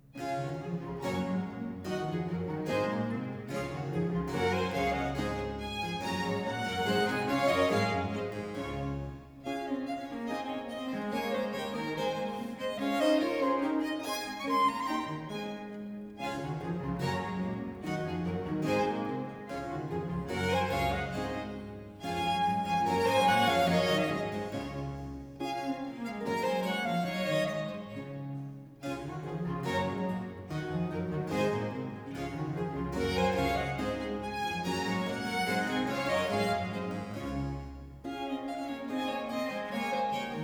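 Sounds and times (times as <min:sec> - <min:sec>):
concerto grosso allegro: 0:00.0 - 0:40.4.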